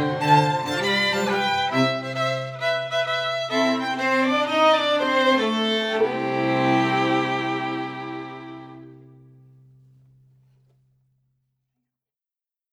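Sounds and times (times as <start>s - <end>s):
strings: 0.0s - 9.6s.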